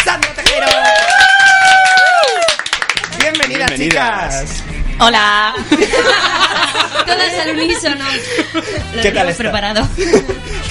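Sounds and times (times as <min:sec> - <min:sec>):
audience applause: 0:00.0 - 0:04.1
speech: 0:03.8 - 0:10.6
laughter: 0:05.6 - 0:09.0, 0:10.0 - 0:10.6.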